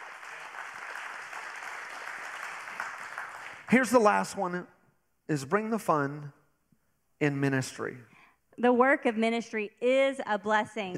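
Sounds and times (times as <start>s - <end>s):
audience hand clapping: 0.0s - 4.5s
speech: 3.7s - 6.4s, 7.2s - 10.9s.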